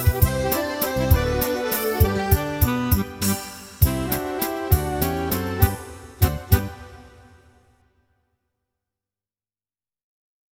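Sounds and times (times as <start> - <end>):
instrumental music: 0.0 - 7.8.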